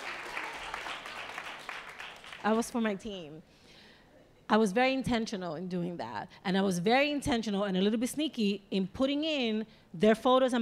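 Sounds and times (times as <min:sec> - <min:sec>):
audience applause: 0:00.0 - 0:02.6
speech: 0:02.4 - 0:03.6, 0:04.5 - 0:10.6.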